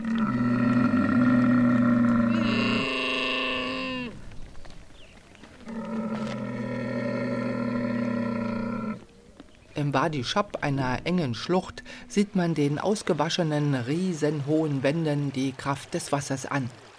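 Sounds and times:
camel calling: 0:00.0 - 0:04.3, 0:05.5 - 0:12.3
speech: 0:09.9 - 0:16.8.

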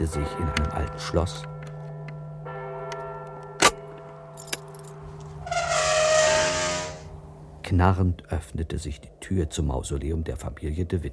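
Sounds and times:
speech: 0:00.0 - 0:01.6, 0:07.7 - 0:11.1
tower clock striking midnight: 0:00.0 - 0:06.1, 0:07.0 - 0:07.6.

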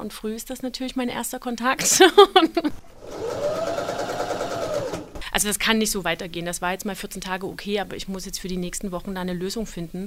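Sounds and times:
speech: 0:00.0 - 0:03.6, 0:05.4 - 0:10.0
sewing machine running: 0:02.9 - 0:05.2.

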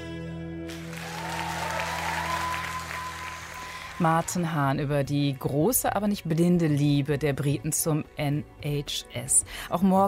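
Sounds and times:
audience applauding in a hall: 0:00.7 - 0:04.5
speech: 0:04.0 - 0:10.0.

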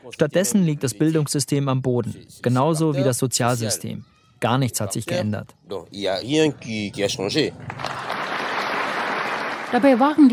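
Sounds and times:
speech: 0:00.0 - 0:08.1, 0:09.7 - 0:10.3
archival recording of applause: 0:07.6 - 0:10.3.

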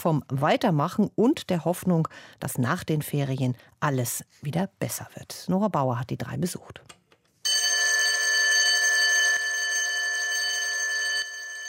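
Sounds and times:
speech: 0:00.0 - 0:07.0
school bell ringing: 0:07.5 - 0:11.6.

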